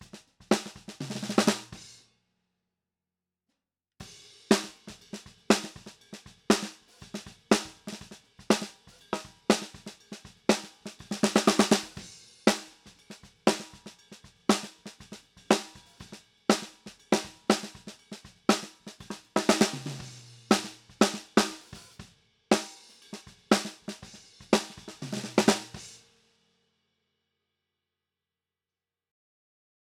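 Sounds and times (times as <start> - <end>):
snare drum: 0.0 - 1.9, 4.4 - 26.1.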